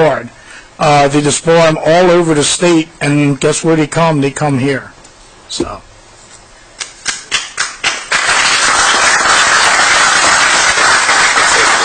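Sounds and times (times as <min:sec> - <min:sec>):
speech: 0:00.0 - 0:05.9
audience clapping at council meeting: 0:07.3 - 0:11.8.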